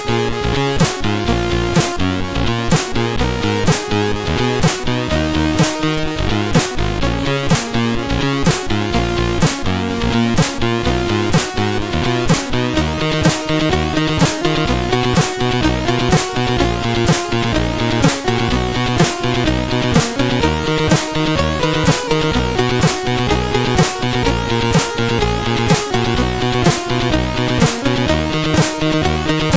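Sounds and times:
alternative bass on SID CSG8580R5 synth chip: 0.0s - 29.5s.

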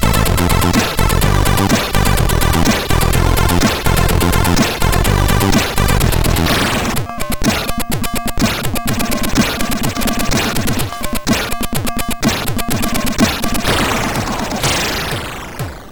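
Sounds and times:
funk chiptune music on a MOS6581R4 SID chip: 0.0s - 15.9s.

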